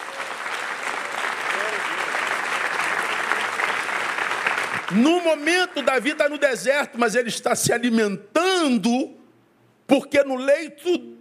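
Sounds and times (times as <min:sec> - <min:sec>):
audience applauding loudly: 0:00.0 - 0:06.4
speech: 0:04.9 - 0:09.2, 0:09.9 - 0:11.1.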